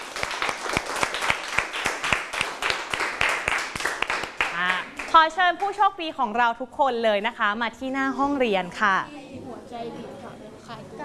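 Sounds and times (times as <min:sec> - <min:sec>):
applause for the lucky winners: 0:00.0 - 0:05.2
speech: 0:05.2 - 0:11.0.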